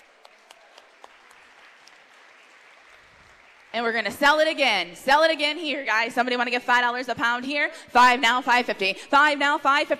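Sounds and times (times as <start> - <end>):
audience applause: 0.0 - 4.0
speech: 3.8 - 9.9.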